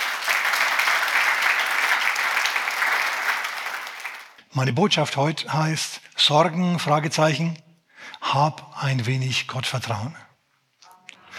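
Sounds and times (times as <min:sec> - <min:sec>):
audience clapping: 0:00.0 - 0:04.4
speech: 0:04.6 - 0:07.6, 0:08.2 - 0:10.3.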